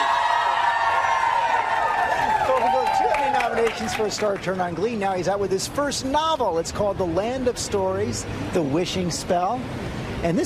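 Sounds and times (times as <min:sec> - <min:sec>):
high shouts from the audience: 0:00.0 - 0:04.1
audience cheering and whooping: 0:00.0 - 0:04.6
speech: 0:03.8 - 0:10.4.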